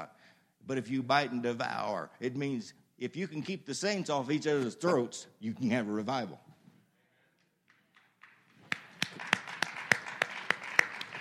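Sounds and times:
speech: 0.7s - 6.5s
audience clapping along in a steady rhythm: 7.4s - 11.1s.

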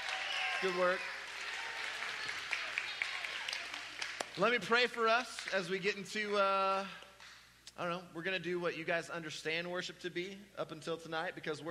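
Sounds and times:
audience applause: 0.0s - 5.6s
speech: 0.6s - 1.2s, 4.4s - 7.0s, 7.8s - 11.6s.

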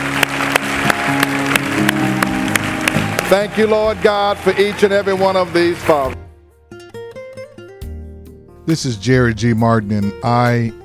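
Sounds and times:
audience applause: 0.0s - 6.2s
speech: 3.3s - 6.2s, 8.7s - 10.8s.

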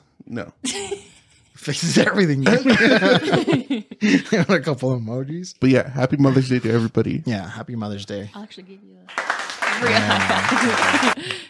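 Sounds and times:
speech: 0.3s - 11.4s
laughter: 1.8s - 4.8s, 9.6s - 11.4s
hand clapping: 9.1s - 11.4s.

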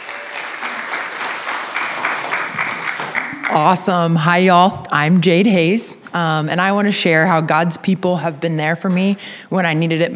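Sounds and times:
church congregation clapping to welcome a speaker: 0.0s - 3.9s
speech: 3.5s - 10.1s.

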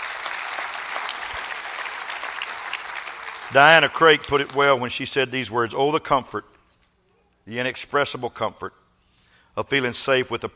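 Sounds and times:
audience clapping hands: 0.0s - 4.8s
speech: 3.5s - 6.5s, 7.5s - 8.8s, 9.6s - 10.5s.

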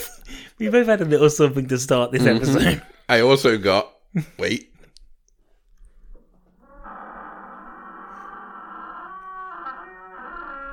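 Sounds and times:
speech: 0.6s - 4.7s
long screaming door sound effect: 6.4s - 10.7s.

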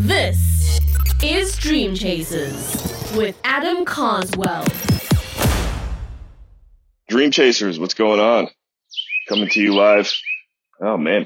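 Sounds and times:
speech: 0.0s - 5.0s, 7.1s - 8.6s, 9.3s - 11.2s
birds chirping on a morning walk in Tampa, Florida: 8.2s - 10.6s.

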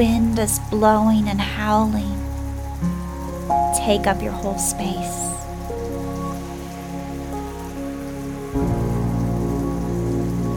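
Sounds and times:
speech: 0.0s - 2.2s, 3.8s - 5.3s
heavy rain pouring: 0.0s - 10.5s.

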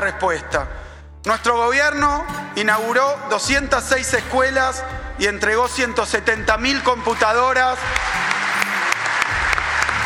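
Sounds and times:
speech: 0.0s - 8.2s
crowd applauding a speech: 7.1s - 10.0s.

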